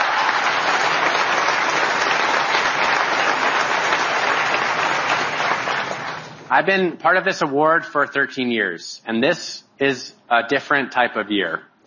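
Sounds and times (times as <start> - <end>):
audience applause: 0.0 - 6.5
speech: 6.5 - 11.7.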